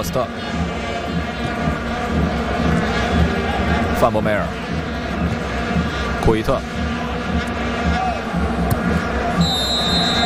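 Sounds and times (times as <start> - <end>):
speech: 0.0 - 0.6, 4.0 - 4.6, 6.3 - 7.5
stadium crowd roar: 0.0 - 10.2
referee's whistle ending the first half of a football match: 9.4 - 10.2.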